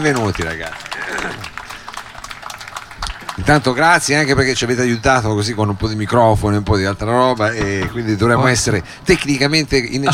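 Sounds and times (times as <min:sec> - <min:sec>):
speech: 0:00.0 - 0:01.5, 0:03.4 - 0:10.1
audience applause: 0:00.0 - 0:04.3.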